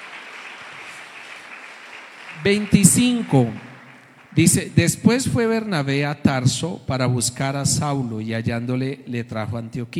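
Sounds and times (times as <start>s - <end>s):
applause: 0.0s - 5.2s
speech: 2.4s - 3.7s, 4.4s - 9.9s.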